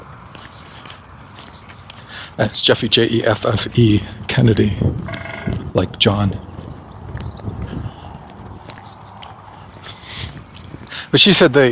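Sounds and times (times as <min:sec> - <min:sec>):
boots treading in dull thudding footsteps: 0:00.0 - 0:02.1, 0:06.5 - 0:11.0
speech: 0:02.4 - 0:06.5, 0:11.1 - 0:11.7.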